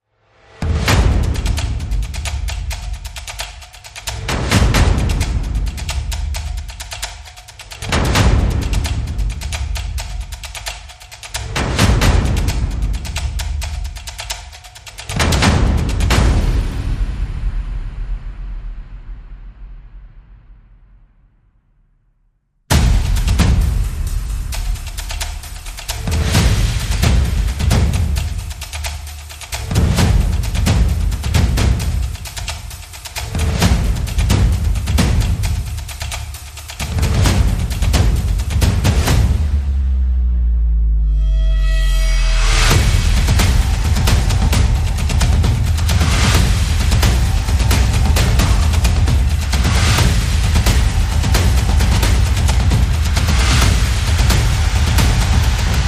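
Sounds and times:
percussion: 0.3 - 21.0, 22.7 - 55.8.

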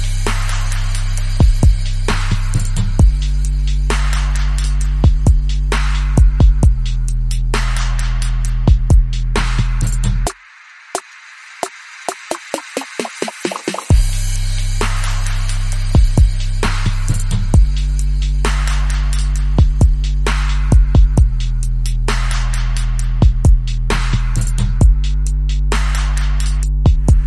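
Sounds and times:
bass: 0.0 - 10.4, 13.9 - 27.2
chill break drums: 0.0 - 27.2.

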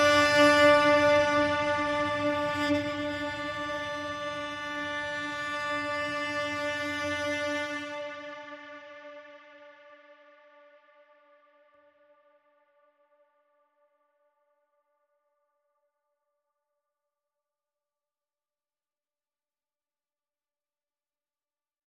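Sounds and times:
cellos: 0.0 - 10.1.

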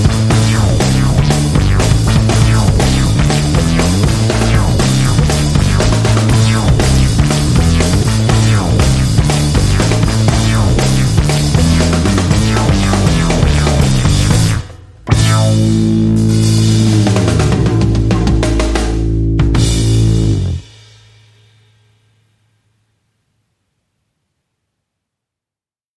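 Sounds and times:
synth: 0.0 - 16.6
bass: 0.0 - 22.2
drums: 0.0 - 22.6.

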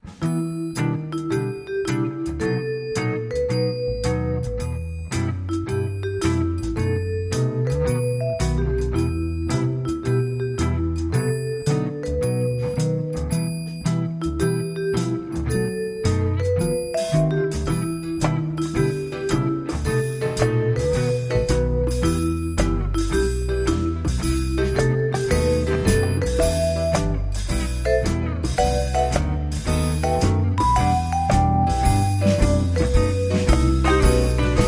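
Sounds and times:
underscore music: 0.0 - 34.6.

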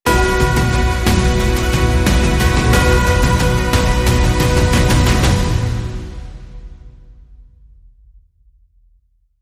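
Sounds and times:
music sting: 0.1 - 7.1.

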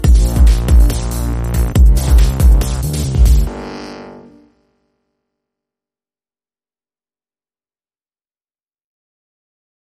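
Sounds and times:
dubstep sting: 0.0 - 4.4.

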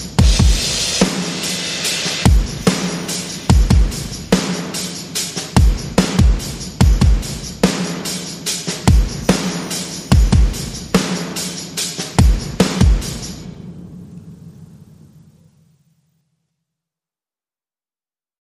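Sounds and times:
percussion: 0.0 - 13.8.

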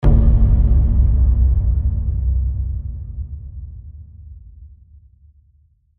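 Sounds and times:
ethnic boom: 0.0 - 4.6.

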